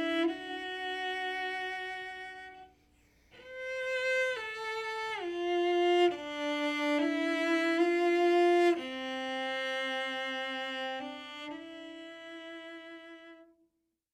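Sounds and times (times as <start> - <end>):
cello: 0.0 - 13.6.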